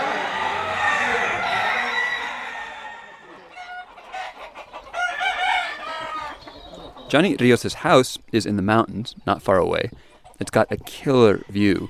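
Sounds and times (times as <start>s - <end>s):
rooster clucking and crowing: 0.0s - 7.1s
speech: 7.1s - 11.8s.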